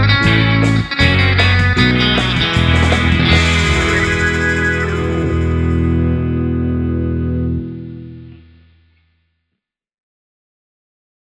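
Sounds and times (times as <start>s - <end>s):
happy-go-lucky guitar: 0.0s - 8.7s.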